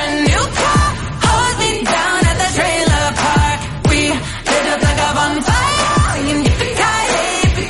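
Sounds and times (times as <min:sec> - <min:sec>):
pop song with light country touches and a thumping beat: 0:00.0 - 0:07.6.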